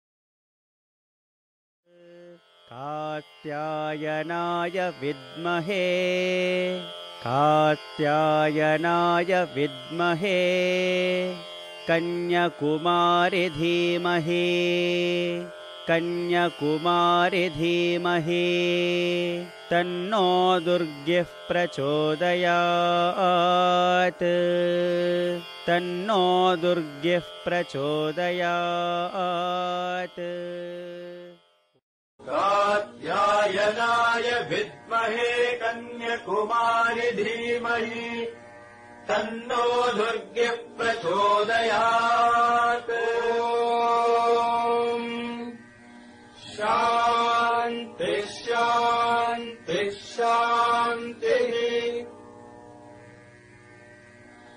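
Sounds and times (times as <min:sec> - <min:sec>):
mantra chanting: 0:01.9 - 0:31.4, 0:32.2 - 0:38.4, 0:39.0 - 0:45.6, 0:46.4 - 0:52.1.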